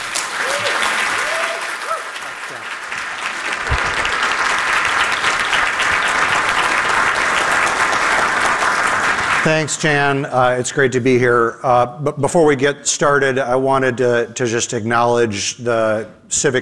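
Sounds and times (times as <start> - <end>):
audience applause welcoming a speaker at the City Club of Cleveland: 0.0 - 9.8
speech: 9.5 - 16.6.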